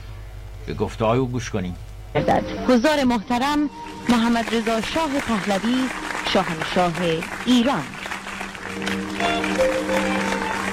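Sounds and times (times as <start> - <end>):
faint tonal hum: 0.0 - 10.7
speech: 0.7 - 8.0
audience applause greeting the Shah of Iran: 3.7 - 10.7.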